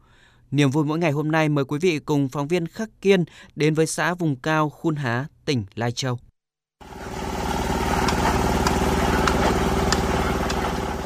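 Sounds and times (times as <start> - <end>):
speech: 0.5 - 7.2
road construction site machinery at Xin Trai: 6.8 - 11.0.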